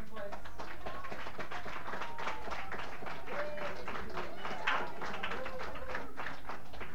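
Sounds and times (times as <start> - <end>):
crowd applause: 0.1 - 6.9
murmuring voices: 1.8 - 6.8.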